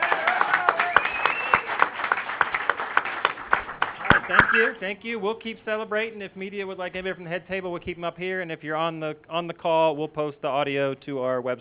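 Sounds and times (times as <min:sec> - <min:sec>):
audience applause: 0:00.0 - 0:04.8
speech: 0:04.3 - 0:11.5.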